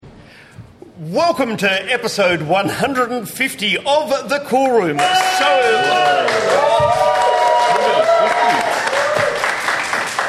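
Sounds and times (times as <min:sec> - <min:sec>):
speech: 0:01.0 - 0:07.2
live audience whoops and cheers: 0:05.0 - 0:09.6
live talk show audience clapping: 0:05.0 - 0:10.2.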